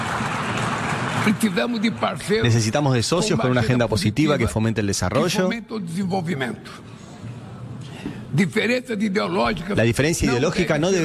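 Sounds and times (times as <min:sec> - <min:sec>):
audience applauding in a hall: 0:00.0 - 0:03.0
speech: 0:01.2 - 0:07.0, 0:08.3 - 0:11.0.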